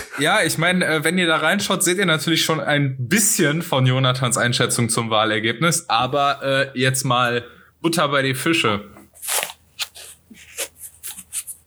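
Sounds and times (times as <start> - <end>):
speech: 0.2 - 9.4
person scratching ear: 8.6 - 11.6.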